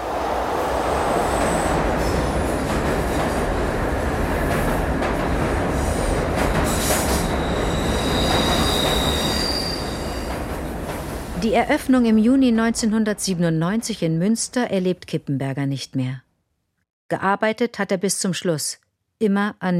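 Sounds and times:
train rushing past a ventilation shaft: 0.0s - 14.5s
speech: 11.4s - 16.2s, 17.1s - 19.7s.

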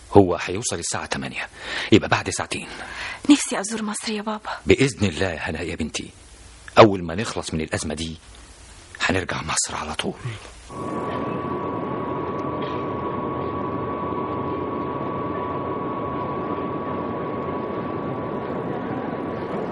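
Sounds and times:
speech: 0.1s - 6.2s, 6.8s - 8.4s, 9.1s - 11.4s
airplane jet engine: 10.7s - 19.6s.

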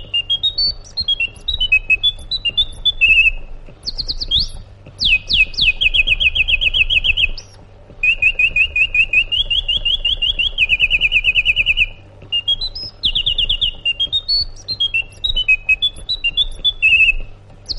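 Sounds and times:
sooty-headed bulbul singing: 0.0s - 17.7s.

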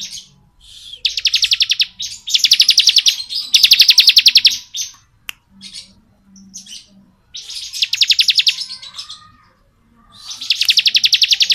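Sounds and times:
bar-winged prinia chips and pulsed trill: 1.0s - 4.9s, 6.6s - 9.1s, 10.3s - 11.5s.

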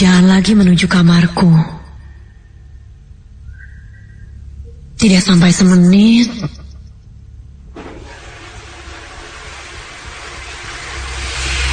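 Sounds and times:
speech: 0.0s - 1.8s, 5.0s - 6.6s
bathroom water tap running: 7.8s - 11.7s.

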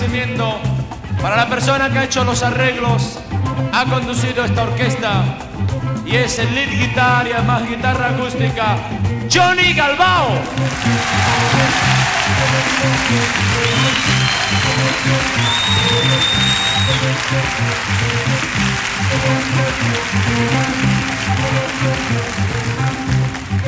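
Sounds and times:
speech: 0.1s - 23.0s
audience applause: 10.6s - 23.6s.

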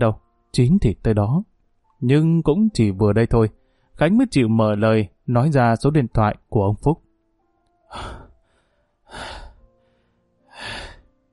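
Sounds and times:
speech: 0.0s - 7.0s, 7.9s - 8.2s, 9.1s - 9.4s
labored pained breathing: 3.6s - 3.9s, 7.9s - 11.3s.

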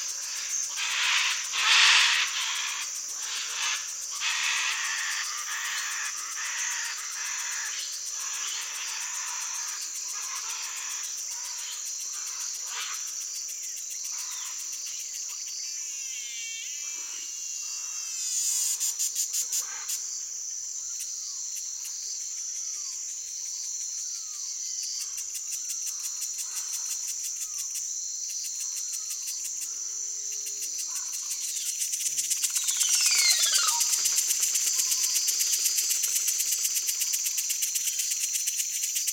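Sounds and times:
cicada song: 0.0s - 39.1s
short falling chirps from other animals: 32.3s - 35.2s.

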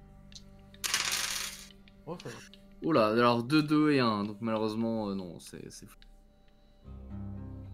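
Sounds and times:
dice being rerolled: 0.8s - 1.8s
speech: 2.1s - 6.1s.

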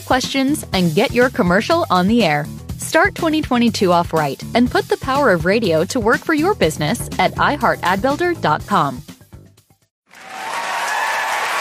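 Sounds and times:
speech: 0.0s - 9.1s
applause in a radio advertisement for ZipRecruiter: 10.0s - 11.6s.

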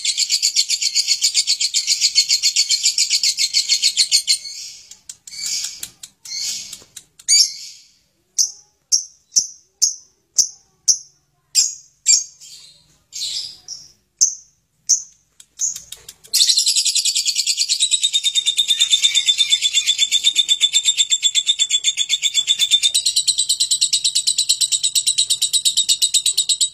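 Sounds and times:
lovebird ngekek chattering song: 0.0s - 7.8s, 13.2s - 26.7s.

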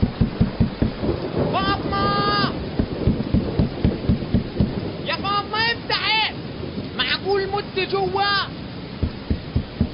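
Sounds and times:
regular low thumps: 0.0s - 5.0s, 8.9s - 9.9s
rain pouring: 0.0s - 9.9s.

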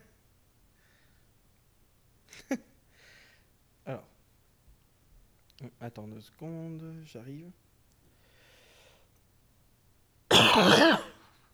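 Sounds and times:
speech: 2.5s - 2.7s, 3.9s - 4.1s, 5.8s - 7.6s
harsh throaty cough: 10.3s - 11.2s.

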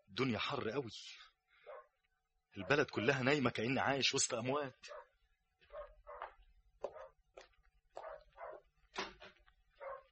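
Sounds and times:
speech: 0.2s - 1.3s, 2.6s - 5.0s
dog barking: 1.6s - 2.0s, 2.6s - 3.2s, 4.8s - 7.2s, 7.9s - 8.7s, 9.7s - 10.0s.

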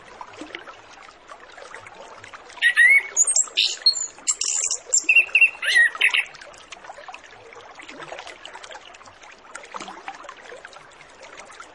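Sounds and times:
orange-headed thrush song: 2.6s - 6.3s.

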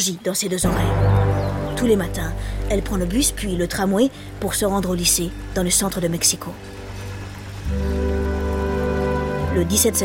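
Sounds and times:
speech: 0.0s - 6.8s, 9.6s - 10.0s
steady rain falling on Mexico City: 0.0s - 10.0s
low even drone: 0.6s - 9.5s.

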